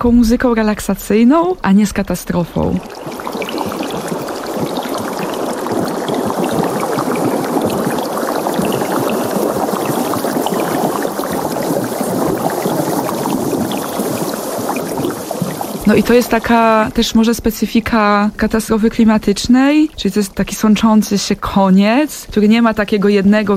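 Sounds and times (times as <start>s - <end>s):
speech: 0.0s - 3.3s, 15.9s - 23.5s
water dripping and trickling like light rain in a sound installation: 1.5s - 23.5s.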